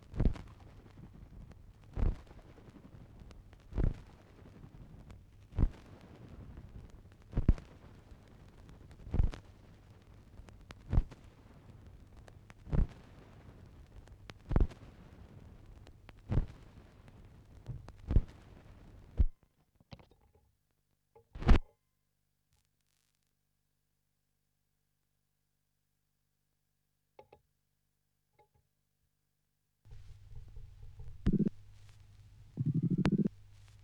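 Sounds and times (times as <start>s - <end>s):
vinyl record noise: 0.0s - 19.3s, 29.9s - 33.8s.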